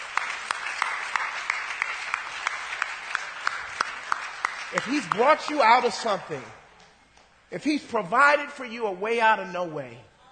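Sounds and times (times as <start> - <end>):
audience applause: 0.0 - 6.5
speech: 4.7 - 6.6, 7.5 - 10.1.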